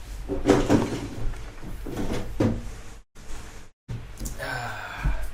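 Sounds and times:
window being slid and pushed shut, scraping and rattling: 0.3s - 2.9s
person gasping: 4.3s - 5.3s.

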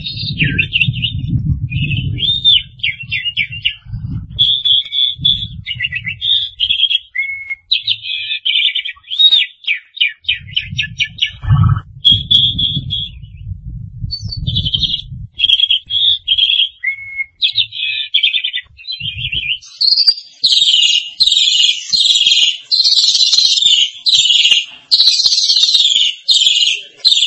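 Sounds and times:
low rumble: 0.0s - 6.8s, 10.2s - 16.4s, 18.7s - 19.6s
starling singing: 0.0s - 27.2s.

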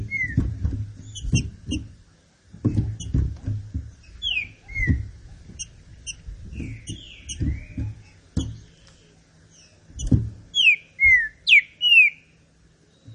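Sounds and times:
green-winged saltator whistling: 0.0s - 0.4s, 4.2s - 5.0s, 5.6s - 7.8s, 10.0s - 12.3s
soft low knocks: 0.0s - 8.9s, 9.8s - 11.3s.

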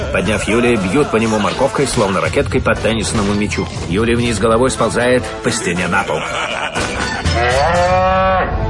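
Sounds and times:
speech: 0.1s - 6.9s
laughter: 5.5s - 7.5s
cow mooing: 7.2s - 8.5s.

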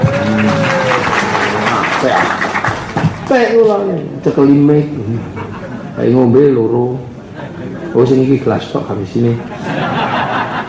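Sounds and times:
audience clapping at a Javanese-language gathering: 0.0s - 3.6s
speech: 3.3s - 10.0s
laughter: 5.1s - 6.0s, 7.3s - 8.2s, 9.4s - 10.6s.

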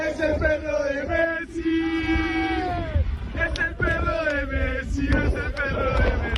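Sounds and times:
crowd singing a chant for a dog: 0.0s - 6.3s.

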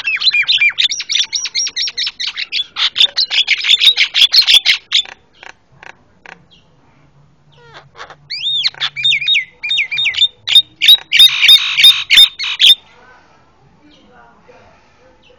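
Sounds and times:
Javan myna chattering and whistling: 0.0s - 6.7s, 7.5s - 12.9s.

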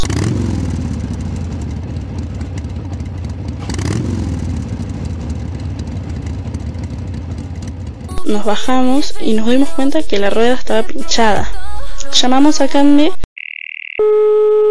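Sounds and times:
motorcycle engine idling after braking: 0.0s - 8.2s
speech: 8.3s - 13.2s.

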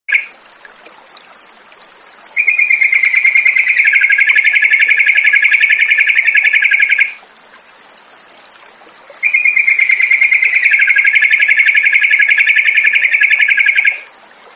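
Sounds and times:
yellow-vented bulbul song of short sharp chirps: 0.1s - 0.3s, 2.4s - 7.2s, 9.2s - 14.1s.

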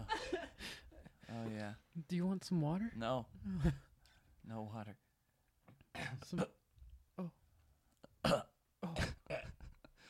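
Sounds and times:
speech: 1.5s - 5.0s, 6.1s - 6.6s, 7.2s - 7.4s, 8.2s - 9.0s
person coughing harshly, played up as coughing up blood: 5.9s - 6.6s, 8.2s - 9.7s.

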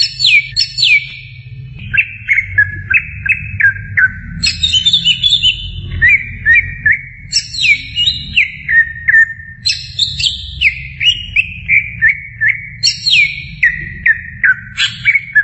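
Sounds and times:
greater green leafbird song with buzzy rattles and chirps: 0.0s - 15.4s.

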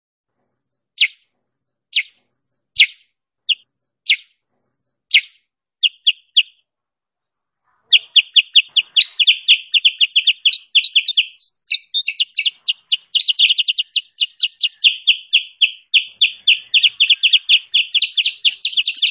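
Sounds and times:
bulbul continuous song: 1.0s - 1.3s, 1.9s - 2.2s, 2.8s - 4.4s, 5.1s - 6.6s, 7.9s - 19.1s.

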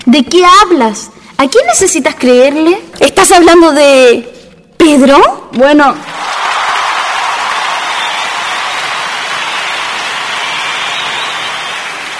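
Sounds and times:
speech: 0.1s - 6.2s
audience applause at a spring festival show: 6.0s - 12.1s.

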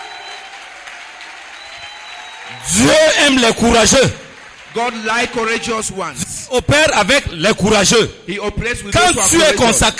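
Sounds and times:
church congregation clapping during a sermon: 0.0s - 6.4s
speech: 2.5s - 9.9s.

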